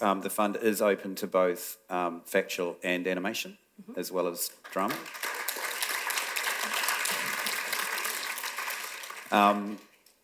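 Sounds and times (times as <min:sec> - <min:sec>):
speech: 0:00.0 - 0:05.3, 0:09.3 - 0:09.9
audience applause: 0:04.8 - 0:09.8.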